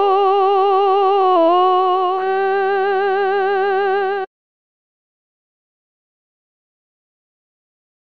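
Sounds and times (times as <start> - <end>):
soprano singing: 0.0 - 4.3.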